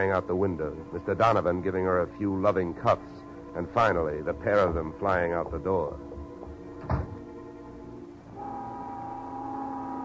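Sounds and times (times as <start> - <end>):
speech: 0.0 - 6.1, 6.8 - 7.1
dull thump: 6.5 - 7.3
factory-style noon whistle blowing: 8.3 - 10.0.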